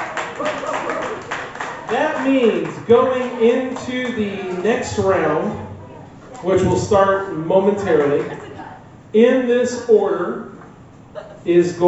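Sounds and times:
whoops and cheering: 0:00.0 - 0:01.9
crowd applauding a poet: 0:00.0 - 0:05.4, 0:07.8 - 0:08.6
speech: 0:01.9 - 0:05.7, 0:06.4 - 0:08.4, 0:09.1 - 0:10.5, 0:11.4 - 0:11.8.

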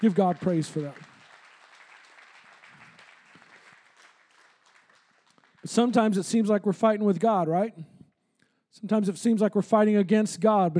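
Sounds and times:
speech: 0:00.0 - 0:01.1, 0:05.6 - 0:07.9, 0:08.7 - 0:10.7
audience clapping hands: 0:00.0 - 0:06.6.

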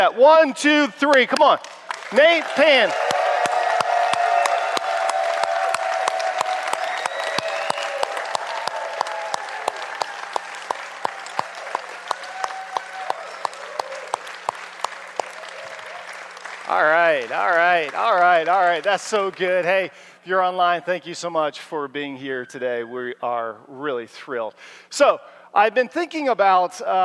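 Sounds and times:
speech: 0:00.0 - 0:03.2, 0:17.8 - 0:27.0
church congregation clapping and cheering: 0:00.0 - 0:21.2.

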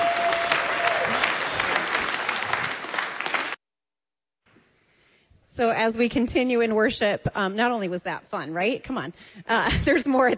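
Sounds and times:
crowd applause: 0:00.0 - 0:03.6
speech: 0:05.6 - 0:10.3.

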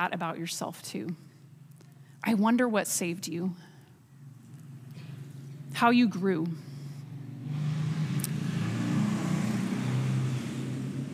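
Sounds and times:
speech: 0:00.0 - 0:01.3, 0:02.2 - 0:03.7, 0:05.7 - 0:06.7
Harley motorcycle driving by: 0:07.0 - 0:11.1.

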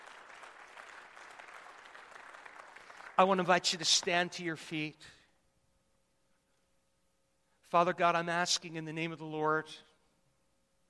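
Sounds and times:
audience clapping: 0:00.0 - 0:03.8
speech: 0:03.2 - 0:05.2, 0:07.7 - 0:09.9.

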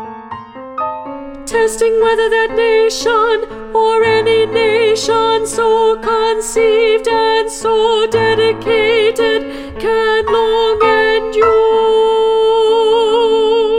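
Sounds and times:
alto voice: 0:01.0 - 0:13.7.

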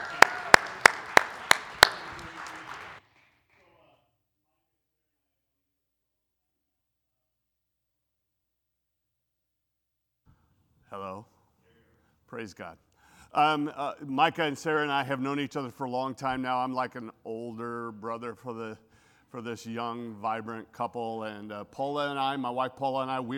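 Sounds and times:
church congregation applauding to welcome a guest preacher: 0:00.0 - 0:03.8
speech: 0:11.0 - 0:11.3, 0:12.3 - 0:23.3.

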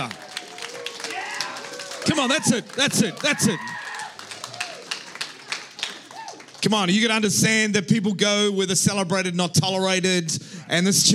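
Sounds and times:
crowd clapping: 0:00.0 - 0:07.3
speech: 0:02.1 - 0:03.7, 0:06.6 - 0:11.1.

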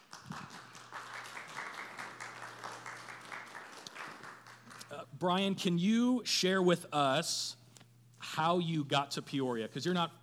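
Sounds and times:
audience applause welcoming a guest: 0:00.0 - 0:05.0
speech: 0:05.2 - 0:07.6, 0:08.4 - 0:10.2.

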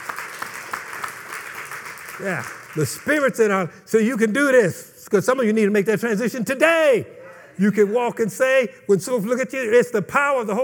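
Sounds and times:
audience hand clapping: 0:00.0 - 0:03.5
speech: 0:02.2 - 0:10.6.

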